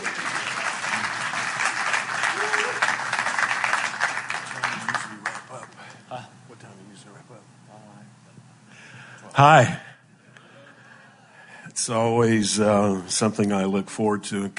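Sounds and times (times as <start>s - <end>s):
audience applause: 0.0s - 5.8s
speech: 9.4s - 9.8s, 11.9s - 14.5s.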